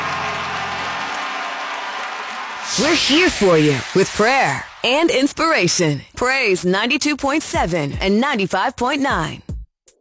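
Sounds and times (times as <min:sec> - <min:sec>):
audience clapping hands: 0:00.0 - 0:06.0
speech: 0:02.7 - 0:09.4.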